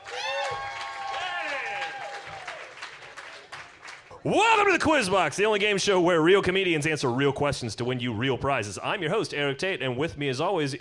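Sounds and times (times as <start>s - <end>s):
studio audience applauding at a comedy quiz game show: 0.0s - 4.7s
speech: 4.2s - 10.7s.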